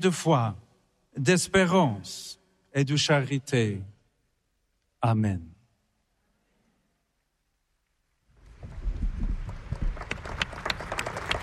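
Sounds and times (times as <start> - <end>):
speech: 0.0 - 0.6, 1.2 - 3.9, 5.0 - 5.5
applause: 8.6 - 11.4.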